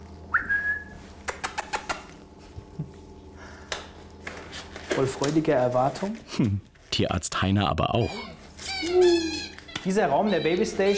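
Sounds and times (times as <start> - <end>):
speech: 5.0 - 10.9
kea parrots calling: 7.9 - 10.9.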